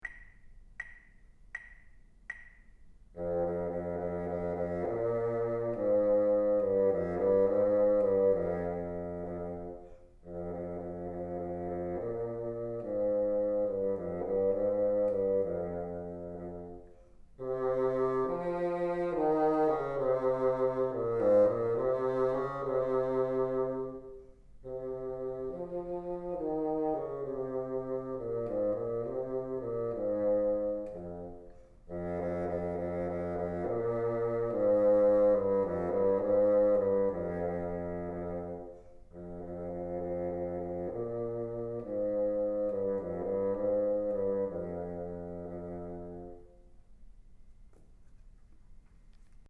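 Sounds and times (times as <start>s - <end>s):
bassoon: 3.1s - 46.8s.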